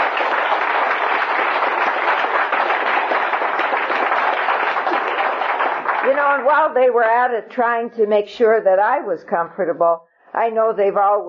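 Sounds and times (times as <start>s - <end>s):
audience round of applause: 0.0s - 6.6s
speech: 6.3s - 11.2s.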